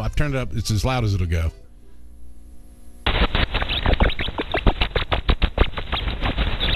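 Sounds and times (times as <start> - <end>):
speech: 0.2 - 1.6
ultrasonic rat laughter from belly tickling, made audible: 3.5 - 6.7.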